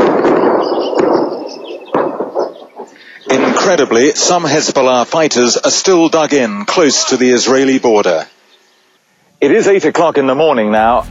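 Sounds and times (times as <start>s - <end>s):
Israeli artillery guns firing: 0.0s - 4.0s
speech: 3.7s - 8.4s, 9.4s - 11.0s.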